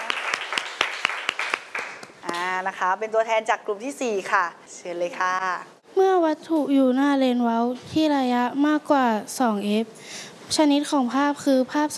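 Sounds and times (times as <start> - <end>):
classroom applause: 0.0 - 2.6
speech: 2.6 - 11.9.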